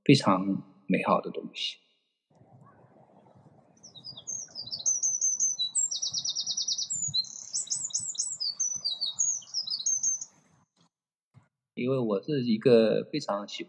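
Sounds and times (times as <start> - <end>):
speech: 0.1 - 1.8, 11.8 - 13.6
birds chirping outside a balcony: 2.4 - 10.4.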